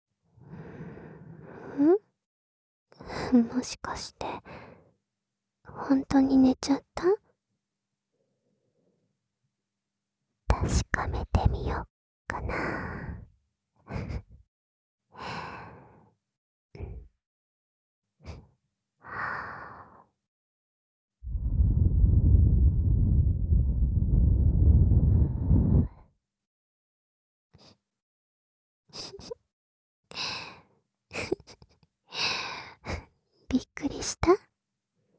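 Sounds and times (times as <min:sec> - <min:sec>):
speech: 0:01.8 - 0:02.0, 0:03.3 - 0:04.3, 0:05.9 - 0:07.2, 0:10.6 - 0:13.0, 0:13.9 - 0:14.2, 0:33.5 - 0:34.5
soft breath blown onto a microphone: 0:21.2 - 0:26.0.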